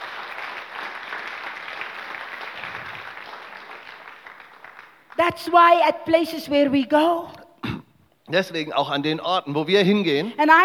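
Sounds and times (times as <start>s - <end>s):
crowd clapping: 0.0s - 5.6s
speech: 5.2s - 7.4s, 8.3s - 10.6s.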